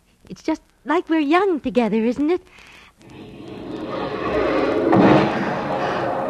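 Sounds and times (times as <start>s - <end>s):
speech: 0.3s - 3.2s
fireworks exploding: 3.0s - 6.2s.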